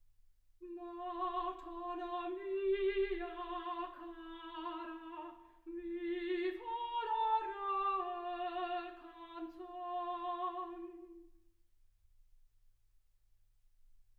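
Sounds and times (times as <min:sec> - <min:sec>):
soprano singing: 0:00.6 - 0:11.3.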